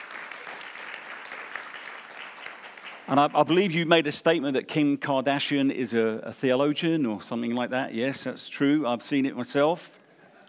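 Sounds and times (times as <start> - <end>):
crowd applauding: 0.0 - 3.8
speech: 3.1 - 10.0.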